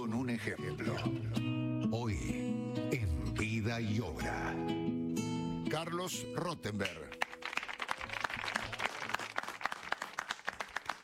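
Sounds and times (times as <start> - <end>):
speech: 0.0 - 5.0, 5.7 - 7.2
audience applause: 7.1 - 11.0.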